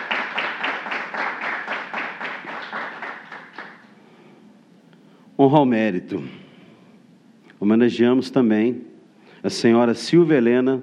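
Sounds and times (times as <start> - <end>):
round of applause: 0.0 - 3.9
speech: 5.4 - 6.4, 7.6 - 10.8.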